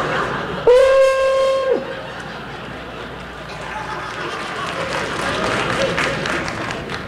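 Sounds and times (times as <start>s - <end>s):
crowd murmur: 0.0s - 7.0s
laughter: 0.0s - 7.0s
old hunting horn being blown: 0.7s - 1.8s.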